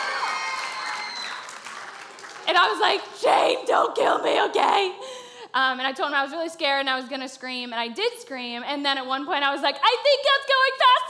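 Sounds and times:
faint audience cheering: 0.0s - 2.4s
audience applause: 0.0s - 2.6s
speech: 2.5s - 11.0s.

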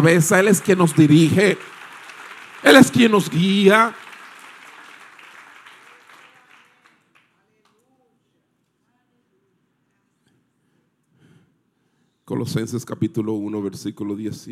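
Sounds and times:
speech: 0.0s - 1.8s, 2.6s - 4.0s, 12.3s - 14.4s
audience applause: 0.0s - 7.3s.

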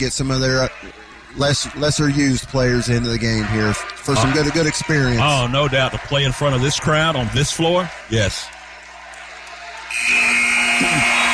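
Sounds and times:
speech: 0.0s - 8.6s
faint crowd noise: 0.0s - 11.3s
end-of-game buzzer: 9.9s - 11.3s.

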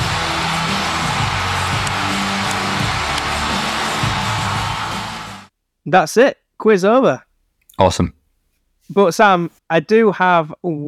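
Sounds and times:
crowd cheering wildly: 0.0s - 5.5s
speech: 5.8s - 8.2s, 8.9s - 10.8s.

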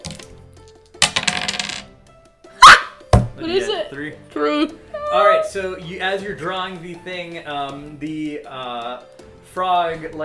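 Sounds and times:
dice clattering across a tabletop: 0.0s - 0.3s, 1.0s - 1.9s
speech: 3.4s - 10.2s.

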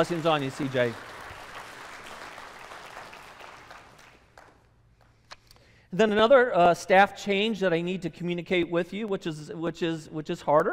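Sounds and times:
speech: 0.0s - 1.1s, 5.9s - 10.7s
church congregation clapping to welcome a new staff member: 0.0s - 5.2s.

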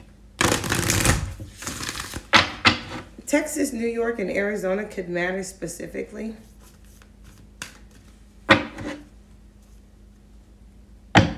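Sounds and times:
tarot cards being shuffled and drawn: 0.4s - 2.3s, 6.4s - 8.2s
speech: 3.3s - 6.5s.

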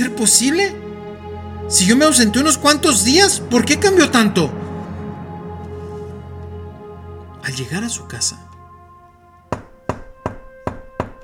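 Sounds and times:
speech: 0.0s - 0.9s, 1.7s - 4.6s, 7.5s - 8.5s
knocking on a door: 9.5s - 11.2s.

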